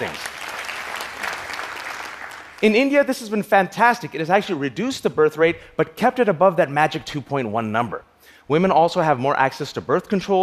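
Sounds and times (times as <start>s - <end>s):
crowd applauding: 0.0s - 2.9s
speech: 2.6s - 10.4s.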